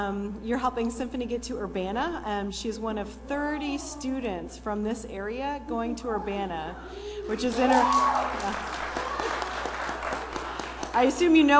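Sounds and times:
speech: 0.0 - 8.8, 11.0 - 11.5
audience applause: 7.4 - 11.2.

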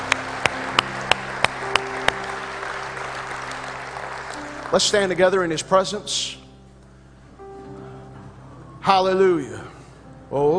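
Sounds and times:
audience hand clapping: 0.0 - 5.3
speech: 4.7 - 6.4, 8.9 - 9.7, 10.3 - 10.5.

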